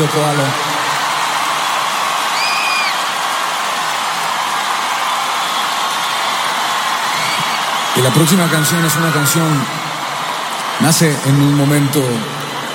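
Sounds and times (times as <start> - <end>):
speech: 0.0 - 0.7, 8.0 - 9.9, 10.8 - 12.4
big audience clapping: 0.0 - 12.7
whistle or cheer: 2.2 - 3.2, 5.2 - 10.0.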